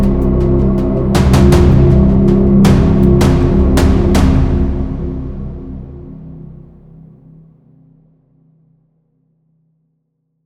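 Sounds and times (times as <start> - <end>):
tension music: 0.0 - 7.0.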